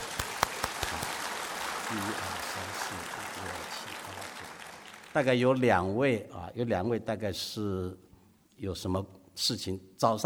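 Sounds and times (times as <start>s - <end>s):
audience applause: 0.0s - 5.3s
speech: 1.9s - 10.2s.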